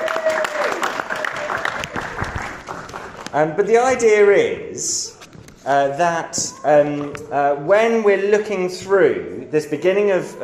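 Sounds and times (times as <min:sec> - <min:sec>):
room full of people applauding: 0:00.0 - 0:03.4
speech: 0:03.4 - 0:10.4.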